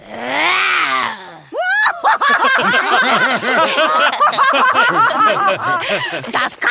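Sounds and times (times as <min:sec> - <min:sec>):
voice imitating a roar: 0:00.0 - 0:01.6
rapid high chattering laughter: 0:01.7 - 0:06.6.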